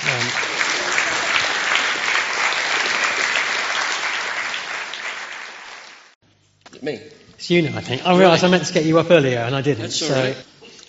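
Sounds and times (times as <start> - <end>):
audience applause: 0.0 - 6.2
speech: 6.8 - 10.5.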